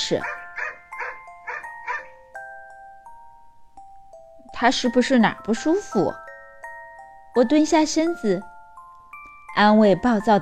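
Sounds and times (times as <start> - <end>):
speech: 0.1 - 0.4, 4.6 - 6.2, 7.4 - 8.5, 9.6 - 10.4
dog barking angrily: 0.2 - 2.1.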